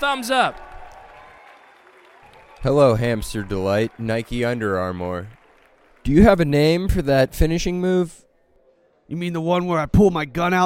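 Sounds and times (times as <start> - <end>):
speech: 0.0 - 0.6, 2.6 - 5.4, 6.0 - 8.2, 9.1 - 10.6
crowd applauding: 0.0 - 7.8
crowd cheering: 0.0 - 9.7.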